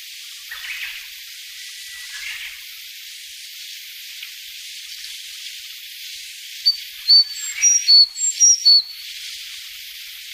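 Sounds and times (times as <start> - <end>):
faint hissing background: 0.0 - 10.3
Sakhalin leaf warbler song of thin whistles: 6.7 - 9.1.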